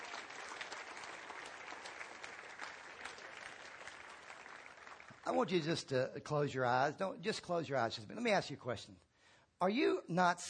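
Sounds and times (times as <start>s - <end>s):
audience clapping: 0.0s - 5.7s
speech: 5.3s - 10.4s.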